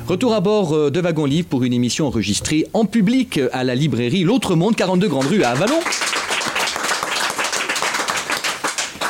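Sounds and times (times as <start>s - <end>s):
speech: 0.1s - 6.2s
hand clapping close to the microphone: 5.1s - 9.0s.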